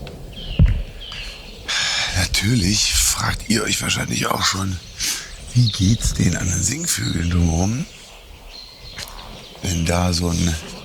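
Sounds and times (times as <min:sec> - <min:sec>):
steady noise: 0:00.0 - 0:10.8
goshawk calling: 0:00.3 - 0:10.8
low thump: 0:00.5 - 0:01.0
speech: 0:02.4 - 0:05.0, 0:05.6 - 0:08.0, 0:09.6 - 0:10.7.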